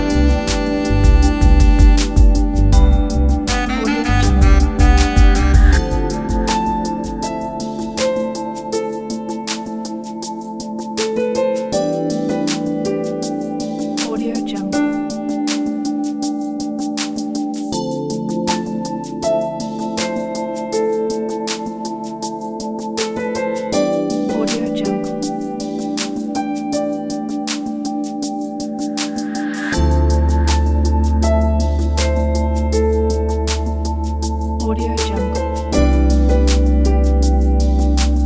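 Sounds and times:
ambient background improvisation: 0.0s - 38.2s.

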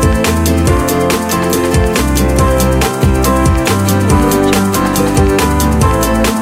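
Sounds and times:
corporate ukulele music: 0.1s - 6.3s.

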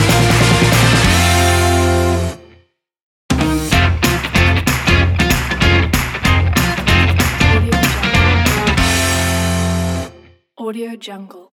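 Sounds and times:
uplifting intro logo music: 0.0s - 2.4s, 3.4s - 10.1s.

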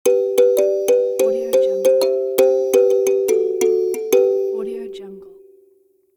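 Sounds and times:
Caribbean kalimba musical transition: 0.1s - 4.8s.

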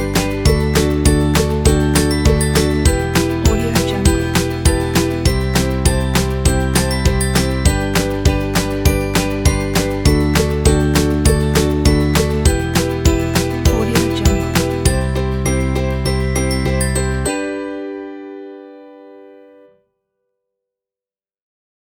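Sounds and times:
happy playful ukulele music: 0.0s - 18.6s.

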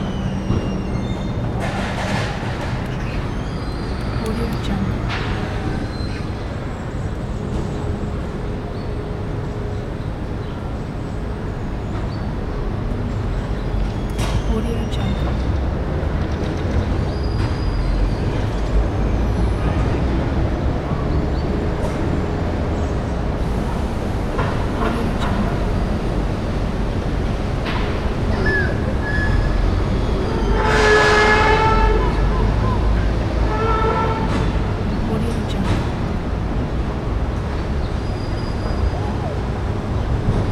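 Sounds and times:
busy city street ambience: 0.0s - 40.4s.

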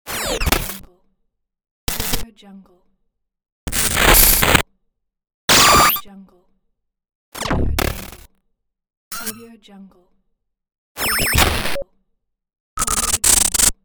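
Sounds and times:
glitch noise: 3.7s - 4.6s, 5.5s - 6.1s, 7.4s - 8.2s, 11.0s - 11.8s, 12.8s - 13.7s.

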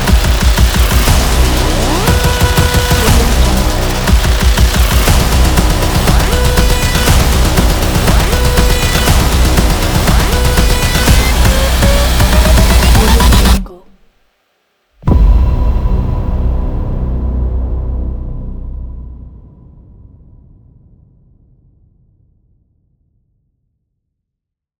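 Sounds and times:
organic countdown hybrid trailer music: 0.0s - 13.8s, 15.0s - 20.4s.

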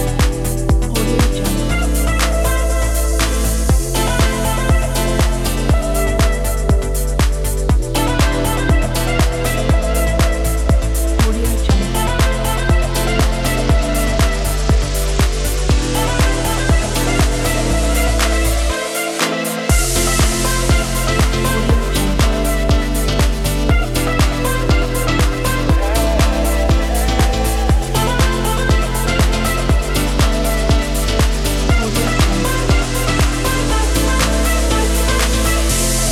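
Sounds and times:
upbeat house music: 0.0s - 36.1s.

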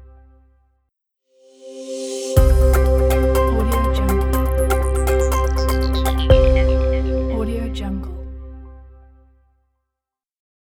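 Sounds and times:
breaking news logo jingle: 2.3s - 8.8s.

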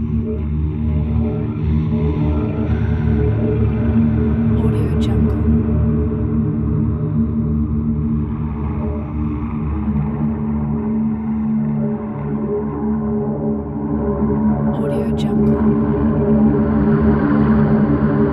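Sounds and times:
dark soundscape drone: 0.0s - 18.3s.

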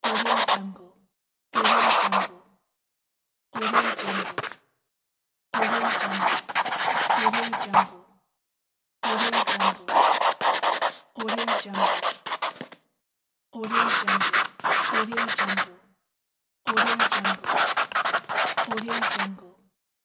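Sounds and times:
pencil writing: 0.0s - 0.6s, 1.6s - 2.3s, 3.6s - 4.6s, 5.6s - 7.9s, 9.0s - 12.8s, 13.6s - 15.7s, 16.7s - 19.4s.

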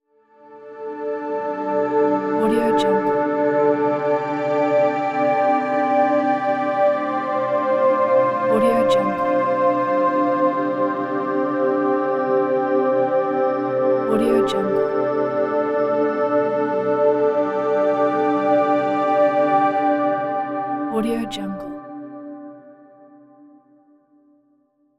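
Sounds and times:
dreamy atmosphere pad: 1.4s - 22.0s.

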